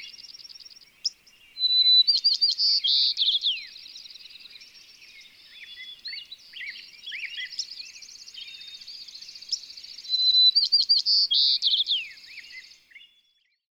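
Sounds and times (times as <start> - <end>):
White-crowned Sparrow calling: 0.0 - 12.9.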